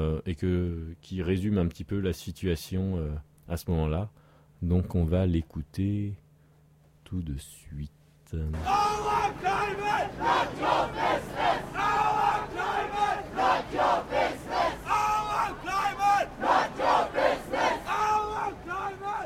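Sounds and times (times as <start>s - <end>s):
speech: 0.0s - 6.2s, 7.1s - 12.0s
protesters chanting at a demonstration to block port activities: 8.6s - 19.2s.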